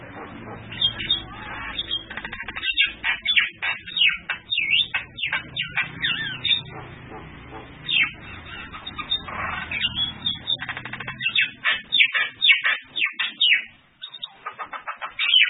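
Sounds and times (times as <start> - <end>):
bird song: 0.0 - 15.4.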